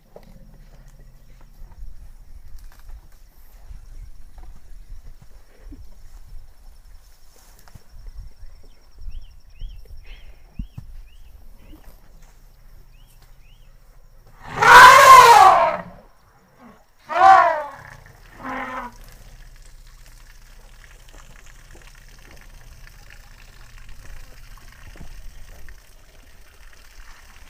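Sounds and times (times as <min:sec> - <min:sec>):
elephant: 0:14.4 - 0:16.0, 0:16.6 - 0:27.4.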